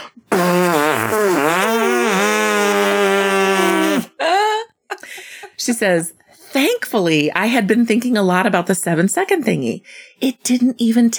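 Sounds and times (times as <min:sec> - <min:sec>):
buzzing fart noise blown against palms: 0:00.0 - 0:04.2
speech: 0:05.7 - 0:11.1.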